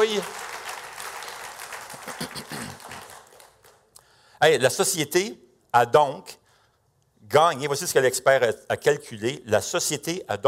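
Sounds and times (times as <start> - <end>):
speech: 0.0 - 0.4, 4.4 - 6.4, 7.3 - 10.4
crowd clapping in a large room: 0.0 - 4.0.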